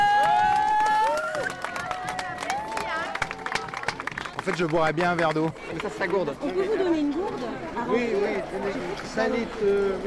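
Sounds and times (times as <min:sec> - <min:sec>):
crowd applauding a water bringer: 0:00.0 - 0:06.7
busy murmur of voices: 0:01.6 - 0:10.0
speech: 0:04.5 - 0:10.0.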